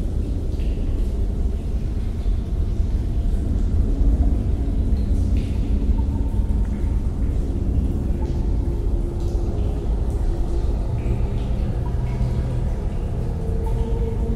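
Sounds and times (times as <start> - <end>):
dark ambience: 0.0 - 14.3.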